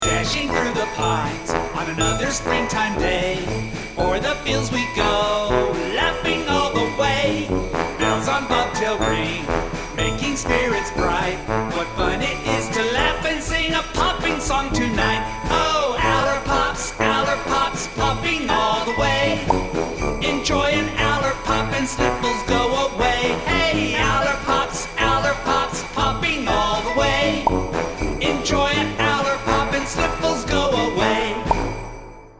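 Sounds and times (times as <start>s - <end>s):
jingle: 0.0s - 32.3s.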